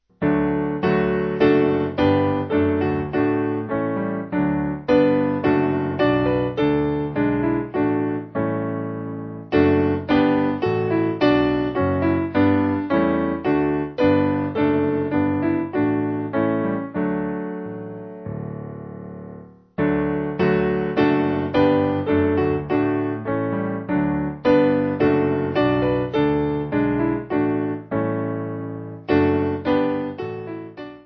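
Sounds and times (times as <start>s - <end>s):
piano backing music for churches: 0.1s - 31.0s.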